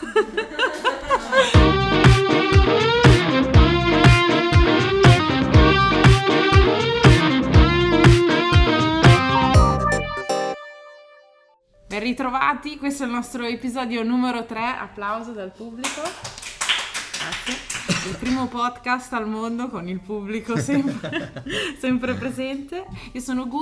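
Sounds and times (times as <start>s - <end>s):
laughter: 0.0s - 1.7s, 17.2s - 18.5s, 20.4s - 22.3s
upbeat podcast theme jingle: 1.6s - 11.6s
speech: 12.0s - 16.4s, 17.3s - 23.6s.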